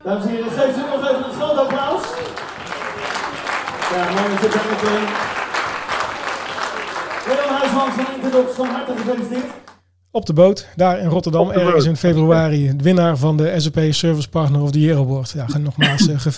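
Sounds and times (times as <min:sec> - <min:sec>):
speech: 0:00.0 - 0:01.7, 0:04.0 - 0:05.4, 0:07.8 - 0:16.3
audience applause: 0:00.4 - 0:09.8
laughter: 0:15.5 - 0:16.3.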